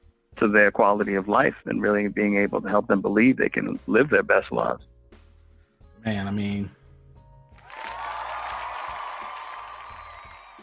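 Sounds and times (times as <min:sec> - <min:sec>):
speech: 0:00.4 - 0:04.9, 0:06.0 - 0:06.8
applause: 0:07.6 - 0:10.6.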